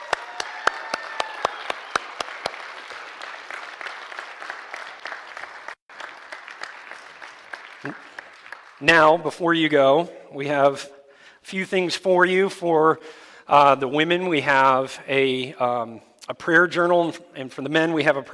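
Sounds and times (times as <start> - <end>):
audience applause: 0.0 - 9.1
speech: 8.8 - 18.3.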